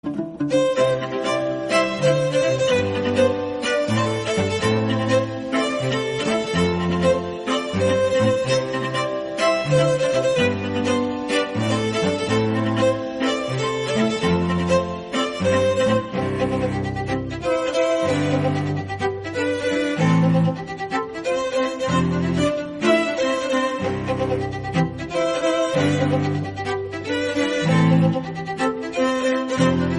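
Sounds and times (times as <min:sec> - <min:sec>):
English instrumental music: 0:00.0 - 0:29.9.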